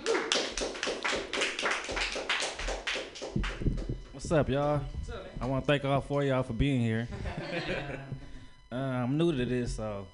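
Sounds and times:
audience clapping for a comedian: 0:00.0 - 0:04.7
speech: 0:04.3 - 0:10.1
laughter: 0:07.1 - 0:08.2.

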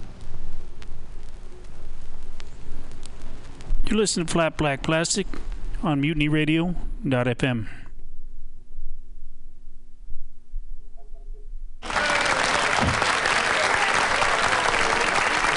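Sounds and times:
speech: 0:03.9 - 0:07.8
applause: 0:11.8 - 0:15.5.

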